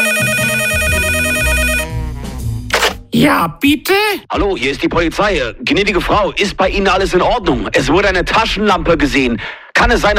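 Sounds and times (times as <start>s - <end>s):
telephone ringing: 0.0s - 2.0s
speech: 3.1s - 10.1s.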